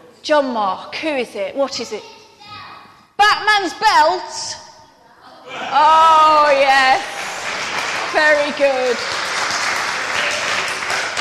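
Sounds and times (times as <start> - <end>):
speech: 0.2 - 2.2, 3.3 - 4.6, 5.5 - 7.1, 8.1 - 9.2
crowd applause: 6.8 - 11.1.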